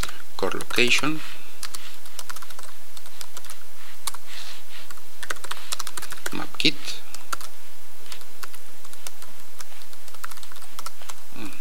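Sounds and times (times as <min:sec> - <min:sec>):
speech: 0:00.4 - 0:01.4
irregular typing on a computer keyboard: 0:01.6 - 0:04.2, 0:04.9 - 0:07.5, 0:08.1 - 0:11.2.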